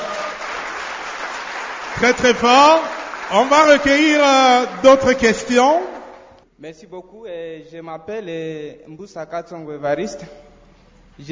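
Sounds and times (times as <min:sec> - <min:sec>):
audience applauding: 0:00.0 - 0:05.8
speech: 0:02.0 - 0:05.9, 0:06.6 - 0:10.4.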